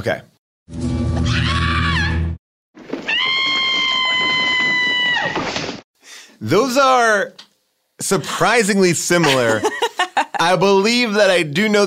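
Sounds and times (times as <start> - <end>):
speech: 0.0 - 0.9, 6.4 - 7.4, 8.0 - 11.8
two high-pitched women's screams played back: 1.2 - 2.3, 3.0 - 5.6
laughter: 9.2 - 10.6.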